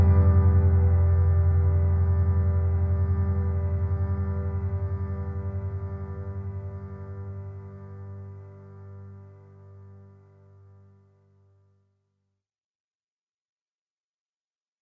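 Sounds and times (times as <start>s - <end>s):
piano music: 0.0s - 7.6s.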